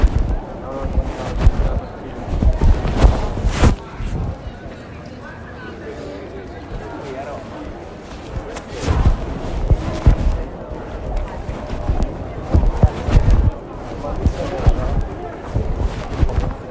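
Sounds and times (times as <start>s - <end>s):
footsteps: 0.0s - 4.5s, 8.0s - 16.6s
crowd murmur at Piazza del Popolo: 0.0s - 16.6s
voices: 0.0s - 16.6s.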